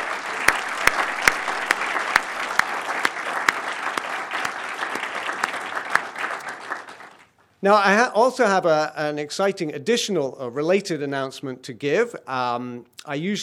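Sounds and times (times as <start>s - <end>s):
audience applause: 0.0s - 7.3s
speech: 7.6s - 13.4s.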